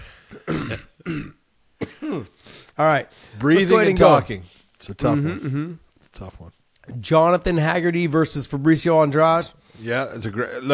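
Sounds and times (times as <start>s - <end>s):
person coughing after choking on a drink: 0.0s - 2.4s, 5.1s - 5.8s
speech: 0.7s - 1.4s, 2.1s - 10.7s.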